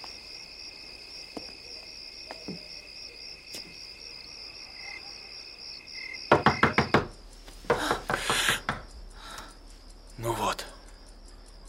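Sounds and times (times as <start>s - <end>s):
knocking on a door: 6.3s - 8.9s.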